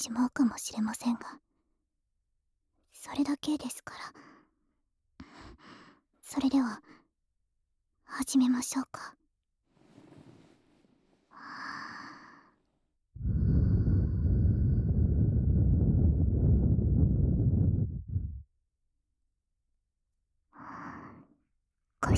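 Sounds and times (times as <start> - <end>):
speech: 0.0 - 1.5, 3.0 - 4.3, 5.6 - 7.0, 8.1 - 9.2
breath blown into the ear: 13.2 - 18.5.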